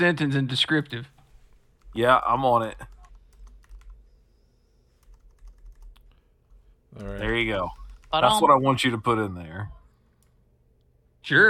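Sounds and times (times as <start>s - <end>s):
speech: 0.0s - 1.2s, 2.0s - 2.9s, 6.9s - 9.8s, 11.2s - 11.4s
typing on a computer keyboard: 2.7s - 4.0s, 4.9s - 8.2s.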